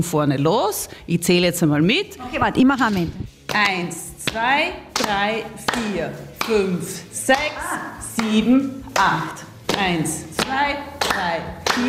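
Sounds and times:
speech: 0.0 - 11.8
hand-clapping game rhythm: 2.9 - 11.8.

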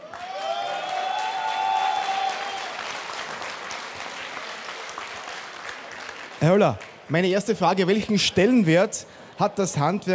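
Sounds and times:
audience applause: 0.0 - 7.1
speech: 6.4 - 10.1.

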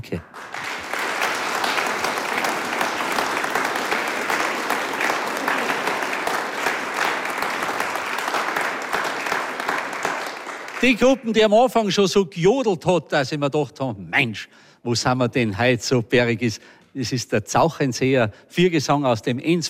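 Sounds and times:
speech: 0.0 - 0.4, 10.8 - 19.6
audience applause: 0.0 - 11.2.

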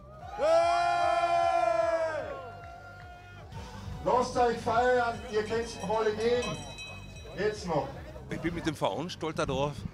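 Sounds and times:
spectators cheering at a moped race: 0.0 - 4.8
speech: 4.2 - 6.7, 7.4 - 9.9.

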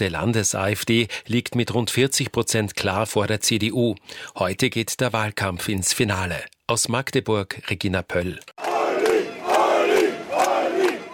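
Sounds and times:
speech: 0.0 - 8.6
fans cheering and chanting at a political election rally in Magdeburg: 8.6 - 11.1.

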